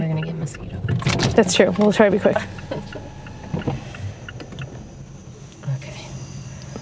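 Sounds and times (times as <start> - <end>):
crickets chirping outside through open car windows: 0.0 - 6.8
speech: 0.4 - 2.9.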